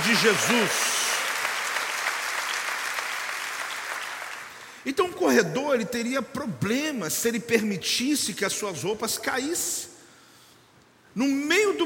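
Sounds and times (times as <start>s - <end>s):
audience applause: 0.0s - 4.6s
speech: 0.2s - 0.9s, 4.8s - 10.0s, 11.2s - 11.8s.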